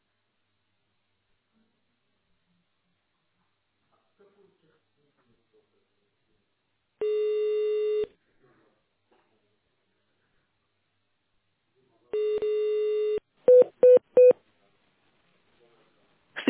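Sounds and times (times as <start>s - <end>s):
long steady telephone tone: 7.0s - 8.1s, 12.1s - 14.4s.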